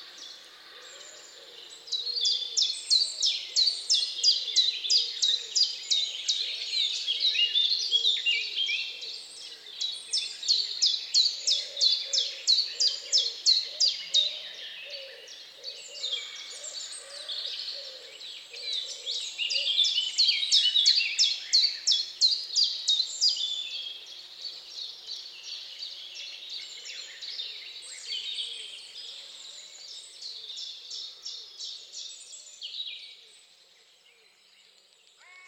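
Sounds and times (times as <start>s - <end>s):
bird chorus: 0.0s - 35.4s.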